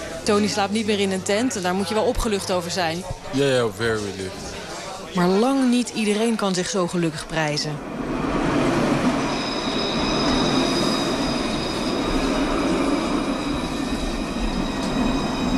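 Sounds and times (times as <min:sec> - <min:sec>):
Luas tram rolling through Dublin toward the city centre: 0:00.0 - 0:15.5
speech: 0:00.2 - 0:04.6, 0:05.2 - 0:08.0
high metallic tram wheel squeals: 0:09.1 - 0:15.5.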